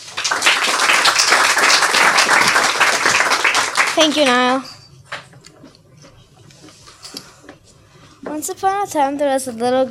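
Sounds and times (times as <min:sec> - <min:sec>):
applause welcoming the next young author at a story reading: 0:00.0 - 0:04.6
speech: 0:04.0 - 0:04.8, 0:08.4 - 0:09.9.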